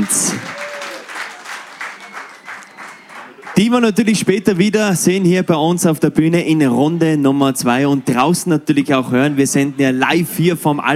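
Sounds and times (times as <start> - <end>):
speech: 0.0 - 0.6, 3.6 - 10.9
audience applause: 0.0 - 3.8.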